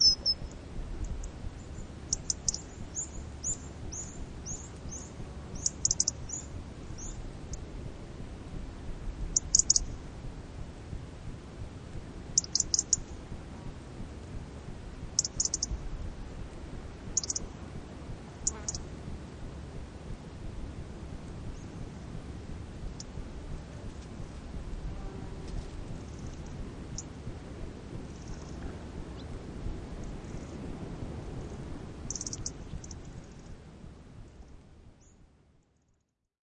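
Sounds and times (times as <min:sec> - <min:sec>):
small birds tweeting by the sea: 0:00.0 - 0:07.6, 0:09.3 - 0:09.9, 0:12.4 - 0:13.1, 0:15.2 - 0:15.8, 0:17.2 - 0:17.5, 0:18.4 - 0:18.8, 0:32.1 - 0:33.5
insects: 0:00.0 - 0:08.0, 0:09.2 - 0:20.3, 0:21.1 - 0:36.2
faint ocean: 0:00.0 - 0:35.4.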